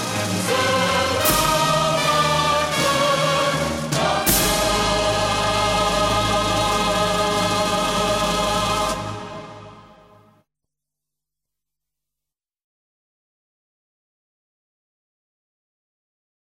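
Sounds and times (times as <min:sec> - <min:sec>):
national anthem: 0:00.0 - 0:10.4.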